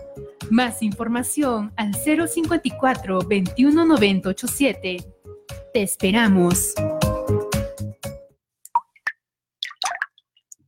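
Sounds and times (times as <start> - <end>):
speech: 0.2 - 5.2, 5.8 - 6.9
water dripping from a leaky tap: 8.7 - 10.6.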